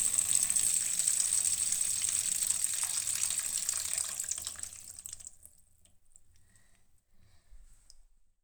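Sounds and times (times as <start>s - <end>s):
person urinating into a washbasin at a love hotel: 0.0s - 5.6s.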